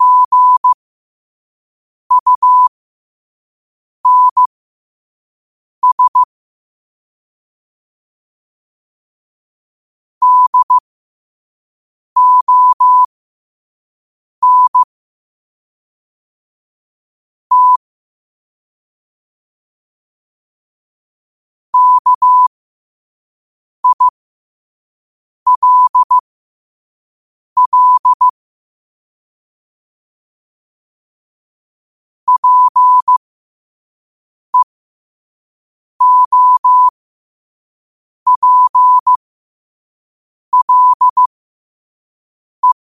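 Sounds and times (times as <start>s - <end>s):
morse code at 5 wpm: 0.0s - 0.8s, 2.1s - 2.7s, 4.1s - 4.5s, 5.8s - 6.3s, 10.2s - 10.8s, 12.2s - 13.1s, 14.4s - 14.9s, 17.5s - 17.8s, 21.8s - 22.5s, 23.8s - 24.1s, 25.5s - 26.2s, 27.6s - 28.4s, 32.3s - 33.2s, 36.0s - 36.9s, 38.3s - 39.2s, 40.5s - 41.3s, 42.6s - 42.8s.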